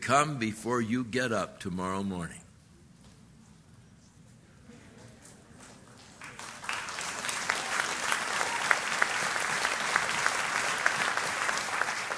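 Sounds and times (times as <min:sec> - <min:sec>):
speech: 0:00.1 - 0:02.4
audience clapping: 0:05.9 - 0:12.1.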